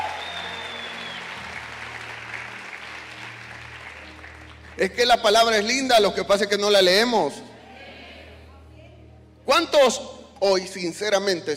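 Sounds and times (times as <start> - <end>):
audience applauding: 0.0 - 5.6
speech: 4.8 - 7.5, 9.6 - 11.5.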